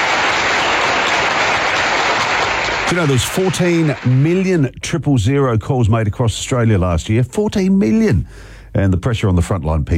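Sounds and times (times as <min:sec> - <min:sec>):
large crowd applauding for frontline workers: 0:00.0 - 0:04.5
speech: 0:02.9 - 0:09.9.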